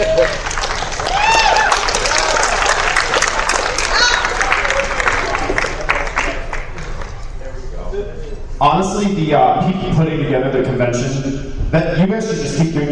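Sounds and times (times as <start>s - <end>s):
whoops and cheers: 0.0s - 2.6s
crowd applauding: 0.0s - 7.4s
speech: 8.8s - 12.8s.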